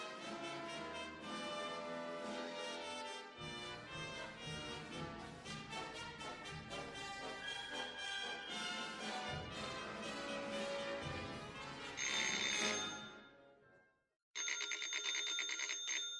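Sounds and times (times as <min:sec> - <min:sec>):
music: 0:00.0 - 0:14.1
rattling telephone bell ringing: 0:12.0 - 0:13.3, 0:14.4 - 0:16.1.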